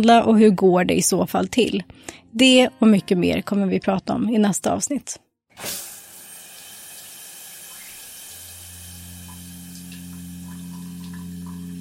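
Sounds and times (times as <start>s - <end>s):
speech: 0.0s - 5.9s
shower water running: 5.6s - 11.8s.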